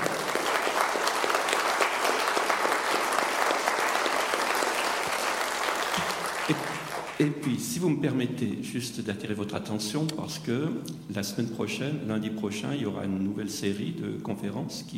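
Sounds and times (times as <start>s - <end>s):
audience applause: 0.0s - 7.3s
speech: 6.5s - 14.9s.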